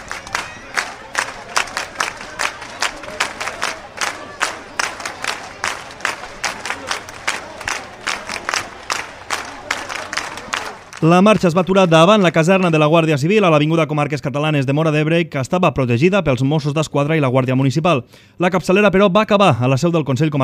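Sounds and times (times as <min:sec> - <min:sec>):
murmur of voices and cheering: 0:00.0 - 0:12.9
marching crowd clapping in unison: 0:00.0 - 0:13.0
speech: 0:11.0 - 0:20.4.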